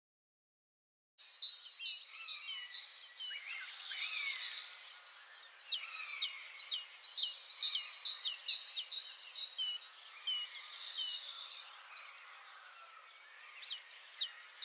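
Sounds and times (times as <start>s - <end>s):
great tit calling: 2.1s - 14.6s.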